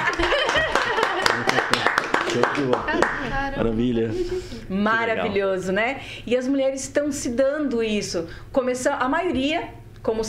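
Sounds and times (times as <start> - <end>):
scattered audience applause: 0.0 - 3.3
laughter: 0.0 - 4.7
speech: 2.4 - 10.2.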